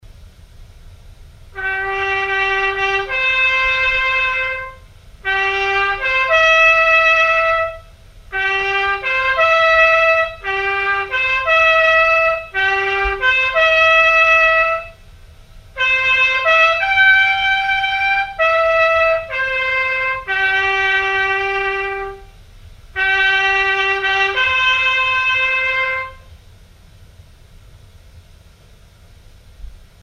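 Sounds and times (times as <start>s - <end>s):
bugle call: 1.6s - 15.1s, 15.7s - 22.4s, 23.0s - 26.3s.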